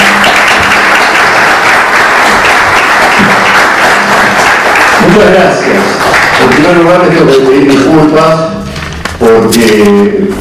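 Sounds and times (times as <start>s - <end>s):
audience applause: 0.0s - 7.6s
speech: 5.2s - 8.5s, 9.2s - 10.3s.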